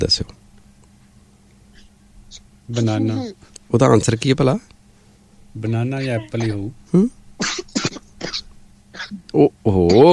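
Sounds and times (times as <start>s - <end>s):
speech: 0.0s - 0.4s, 2.7s - 4.7s, 5.6s - 7.2s, 9.1s - 10.1s
person coughing: 6.0s - 9.2s, 9.8s - 10.1s.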